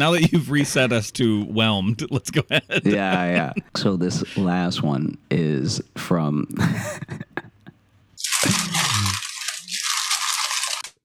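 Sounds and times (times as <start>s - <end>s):
speech: 0.0s - 7.3s
laughter: 2.0s - 4.5s, 6.5s - 7.8s
crinkling bag of chips or crumpled paper: 8.4s - 10.9s.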